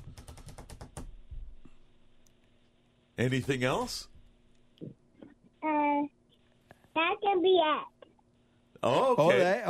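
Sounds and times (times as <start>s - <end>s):
typing on a laptop keyboard: 0.0s - 1.2s
speech: 3.2s - 4.1s, 7.3s - 7.9s, 8.8s - 9.6s.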